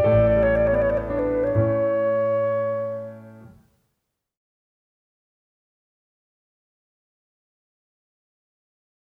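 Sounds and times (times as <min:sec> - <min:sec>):
instrumental music: 0:00.0 - 0:03.8.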